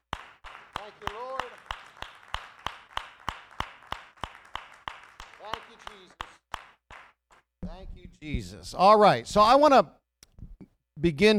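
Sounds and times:
audience clapping hands: 0.0 - 8.3
speech: 8.1 - 10.0, 11.0 - 11.3.

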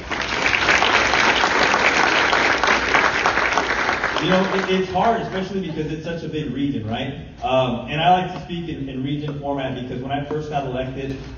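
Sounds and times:
audience applause: 0.0 - 5.7
speech: 4.2 - 11.3.

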